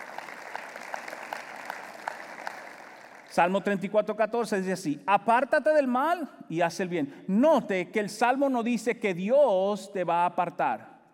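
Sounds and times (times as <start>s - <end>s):
audience applause: 0.0s - 3.3s
speech: 3.4s - 11.1s.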